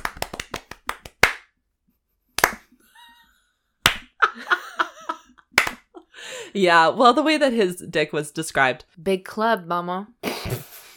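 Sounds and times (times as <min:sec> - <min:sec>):
round of applause: 0:00.0 - 0:01.4
laughter: 0:04.2 - 0:06.1
speech: 0:06.5 - 0:10.2.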